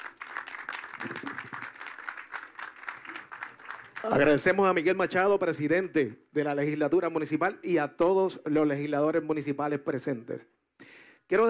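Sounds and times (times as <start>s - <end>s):
crowd applauding: 0.0s - 4.8s
speech: 1.0s - 1.3s, 4.0s - 10.6s, 11.3s - 11.4s.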